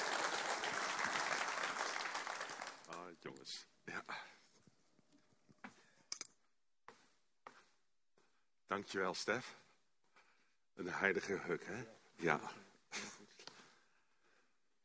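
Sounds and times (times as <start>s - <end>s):
welcoming applause: 0.0s - 3.2s
speech: 3.2s - 4.4s, 8.7s - 9.6s, 10.8s - 12.6s.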